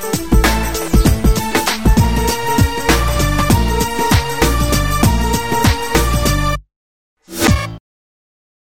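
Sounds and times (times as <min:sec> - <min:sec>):
background music pads: 0:00.0 - 0:06.6.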